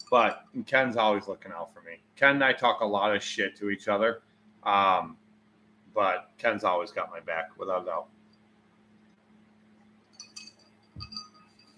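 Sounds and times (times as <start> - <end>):
glassy clinks: 0.0 - 0.6, 10.1 - 11.7
speech: 0.1 - 5.2, 6.0 - 8.2.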